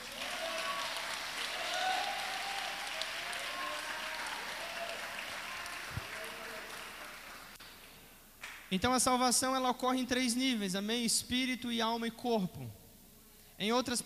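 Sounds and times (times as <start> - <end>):
audience applause: 0.0 - 7.8
speech: 8.7 - 12.8, 13.6 - 14.0.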